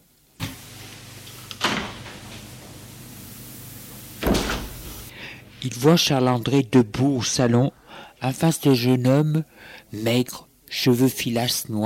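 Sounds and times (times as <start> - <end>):
door opening: 1.5 - 2.8, 4.2 - 5.1
speech: 5.6 - 11.8.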